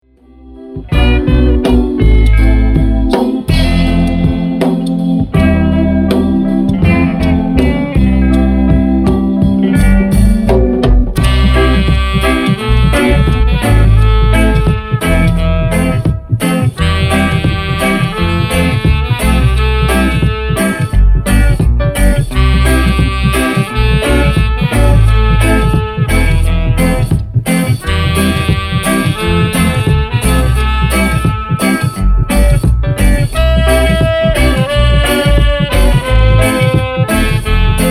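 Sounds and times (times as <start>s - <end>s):
wailing dub music: 0.2s - 37.9s.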